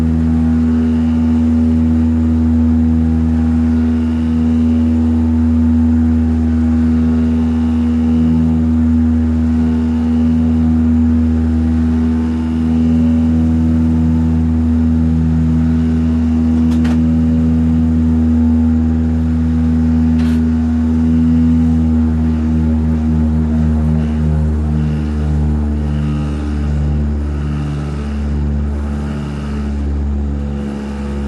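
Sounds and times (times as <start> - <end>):
airplane propeller: 0.0 - 31.2.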